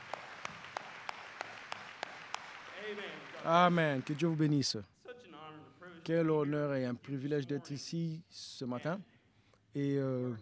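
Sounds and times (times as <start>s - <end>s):
church congregation clapping in rhythm: 0.0s - 4.7s
speech: 2.9s - 5.0s, 6.1s - 9.1s, 9.7s - 10.3s.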